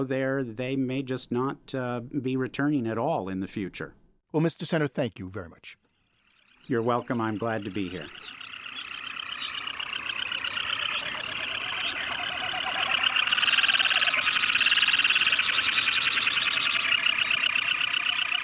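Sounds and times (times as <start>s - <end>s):
speech: 0.0s - 5.8s, 6.7s - 8.6s
birds at Tshakpuk Lake during mating season: 6.2s - 18.4s.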